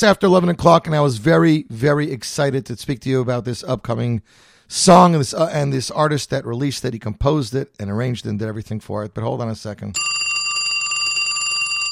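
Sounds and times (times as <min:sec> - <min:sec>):
speech: 0:00.0 - 0:10.2
telephone ringing: 0:10.0 - 0:11.9.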